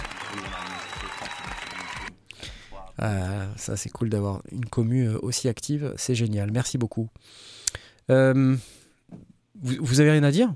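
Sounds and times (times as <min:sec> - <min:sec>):
applause: 0:00.0 - 0:02.1
speech: 0:03.0 - 0:10.5.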